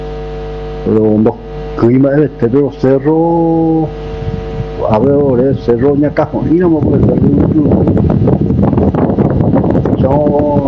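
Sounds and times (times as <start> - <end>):
speech: 0.8 - 4.0, 4.8 - 8.3, 10.1 - 10.6
strong warm wind blowing in the central area: 3.0 - 10.6.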